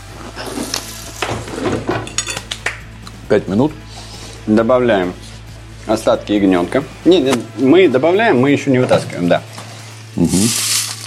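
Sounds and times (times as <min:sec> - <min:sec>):
cherry tomatoes clattering into a cooking pan: 0:00.7 - 0:02.8
speech: 0:03.3 - 0:05.2, 0:05.8 - 0:09.5, 0:10.2 - 0:10.7.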